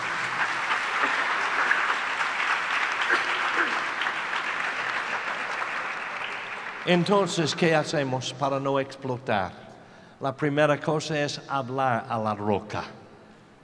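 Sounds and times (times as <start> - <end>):
audience applause: 0.0 - 7.7
speech: 6.9 - 9.6, 10.2 - 13.0.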